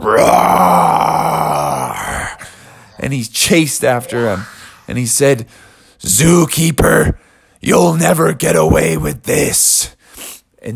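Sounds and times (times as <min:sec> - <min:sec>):
speech: 0:00.0 - 0:00.4, 0:03.1 - 0:10.0
person imitating a bear's roar: 0:00.0 - 0:02.4, 0:03.9 - 0:04.9.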